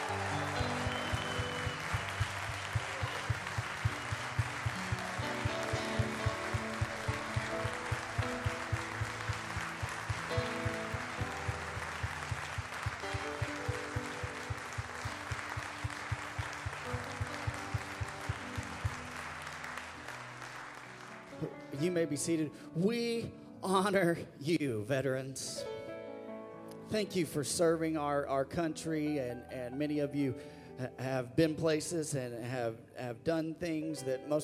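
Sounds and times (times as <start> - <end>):
music with rhythmic beat: 0.0 - 19.2
loud sustained applause from a large church crowd: 0.0 - 21.6
speech: 22.0 - 25.7, 26.9 - 34.4.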